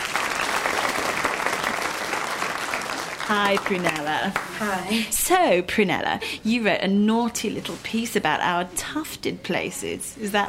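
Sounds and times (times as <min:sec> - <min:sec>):
audience clapping: 0:00.0 - 0:04.9
speech: 0:03.3 - 0:10.4.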